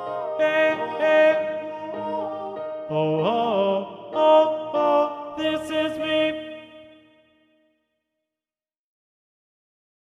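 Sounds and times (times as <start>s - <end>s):
tenor singing: 0.0s - 7.1s.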